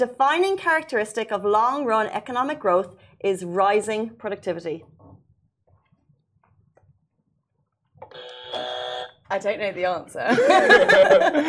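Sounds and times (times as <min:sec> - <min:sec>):
speech: 0:00.0 - 0:05.0, 0:09.3 - 0:11.4
quiz buzzer: 0:08.0 - 0:09.3
laughter: 0:10.3 - 0:11.4.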